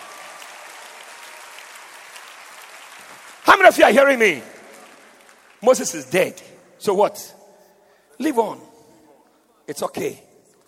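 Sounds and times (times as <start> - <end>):
audience clapping hands: 0.0 - 6.6
speech: 3.5 - 4.5, 5.6 - 7.4, 8.2 - 8.7, 9.7 - 10.3.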